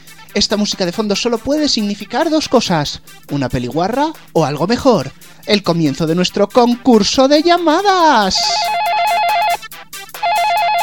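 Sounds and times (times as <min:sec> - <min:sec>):
speech: 0:00.4 - 0:08.8
electronic telephone ringtone: 0:08.3 - 0:10.8.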